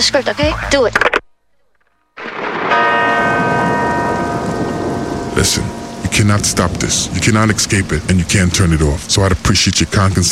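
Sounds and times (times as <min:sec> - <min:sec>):
speech: 0:00.0 - 0:01.2, 0:05.4 - 0:10.3
deep church bell tolling: 0:02.2 - 0:08.7
rumbling thunder: 0:02.2 - 0:10.0
rain: 0:02.2 - 0:10.3.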